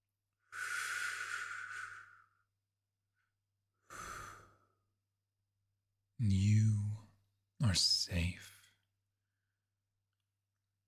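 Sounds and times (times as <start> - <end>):
slow soft breathing in and out: 0.4 - 2.5, 3.2 - 5.0
speech: 7.8 - 8.5.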